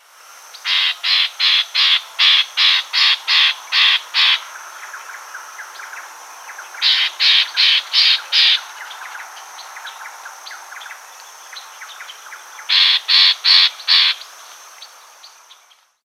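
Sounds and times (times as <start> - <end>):
bird harsh raspy calls: 0.6 - 4.6, 6.8 - 9.0, 12.7 - 14.3.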